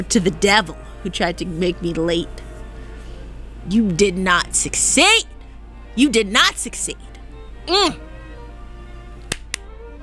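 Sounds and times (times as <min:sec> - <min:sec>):
speech: 0:00.0 - 0:02.5, 0:03.6 - 0:05.3, 0:06.0 - 0:07.1, 0:07.7 - 0:08.0
hand claps from one person: 0:09.2 - 0:09.7.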